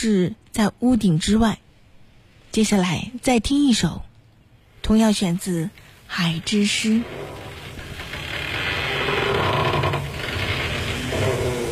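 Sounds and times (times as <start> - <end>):
speech: 0.0 - 1.6, 2.6 - 4.1, 4.9 - 7.4
creaking door: 6.4 - 11.7.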